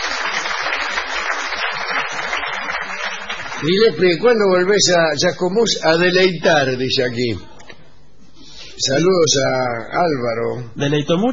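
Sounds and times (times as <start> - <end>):
audience applause: 0.0 - 4.2
speech: 3.6 - 7.5, 8.8 - 11.3.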